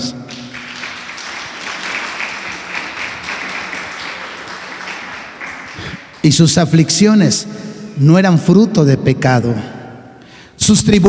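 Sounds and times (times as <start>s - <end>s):
audience applause: 0.3s - 6.6s
speech: 6.2s - 9.8s, 10.6s - 11.0s.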